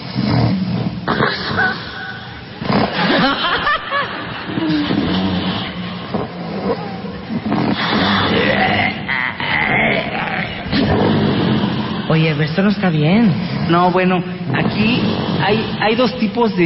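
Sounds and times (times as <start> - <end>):
loud rough snoring with partial airway obstruction: 0.0 - 1.8, 4.5 - 12.4, 14.5 - 16.1
laughter: 1.3 - 5.3, 10.6 - 12.5
speech: 12.4 - 16.6.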